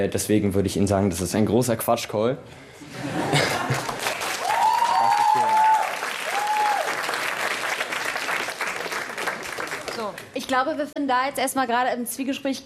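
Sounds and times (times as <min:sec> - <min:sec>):
speech: 0:00.0 - 0:03.5, 0:10.5 - 0:12.6
laughter: 0:02.8 - 0:04.2
audience applause: 0:03.3 - 0:10.2
whistles and cheers: 0:04.4 - 0:07.1.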